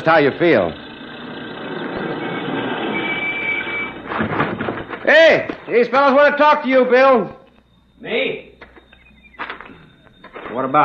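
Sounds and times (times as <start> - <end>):
speech: 0.0 - 0.8, 5.1 - 7.4, 8.0 - 8.5, 10.6 - 10.8
truck rumbling on rough road: 0.0 - 5.7.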